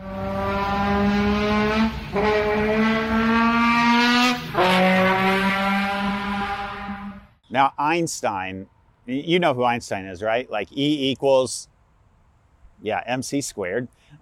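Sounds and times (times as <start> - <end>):
race car engine roaring past: 0.0 - 7.3
speech: 7.6 - 11.7, 12.8 - 14.1.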